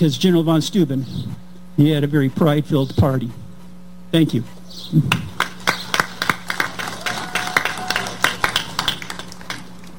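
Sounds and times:
speech: 0.0 - 3.4, 4.1 - 5.3
audience applause: 5.4 - 9.9.

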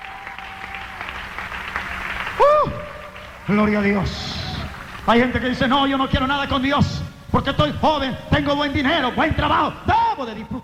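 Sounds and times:
audience applause: 0.0 - 5.1
person shouting: 2.4 - 3.0
speech: 3.5 - 4.3, 5.0 - 10.6.

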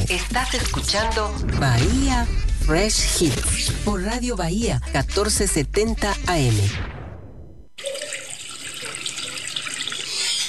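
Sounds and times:
speech: 0.1 - 6.9
water running from a tap: 7.8 - 10.4.

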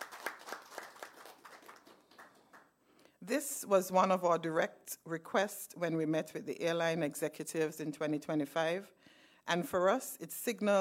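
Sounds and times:
audience applause: 0.0 - 2.7
speech: 3.2 - 10.7.

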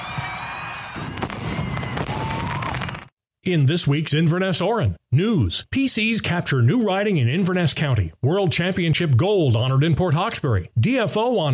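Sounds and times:
fireworks exploding: 0.0 - 3.1
speech: 3.4 - 11.5.

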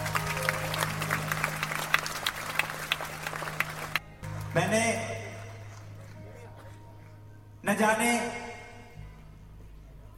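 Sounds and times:
audience applause: 0.0 - 6.3
speech: 4.6 - 5.2, 7.7 - 8.4.

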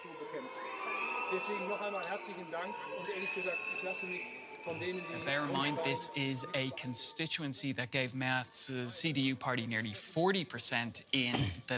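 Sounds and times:
crowd booing a politician: 0.0 - 7.7
speech: 1.3 - 11.7.

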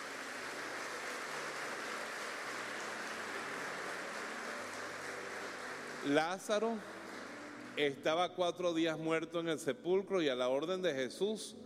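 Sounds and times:
audience applauding: 0.0 - 8.2
speech: 6.0 - 7.0, 7.8 - 11.6.

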